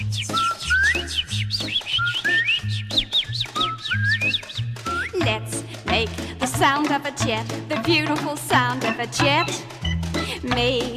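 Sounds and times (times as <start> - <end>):
several people whistling bird-like calls: 0.0 - 5.2
steady rhythmic musical backing with low repeating bass notes: 0.0 - 10.9
speech: 6.6 - 9.8, 10.4 - 10.9.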